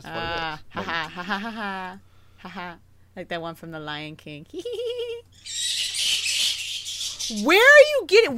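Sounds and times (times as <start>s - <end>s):
speech: 0.0s - 5.5s, 7.3s - 8.3s
bat calls: 5.4s - 7.8s.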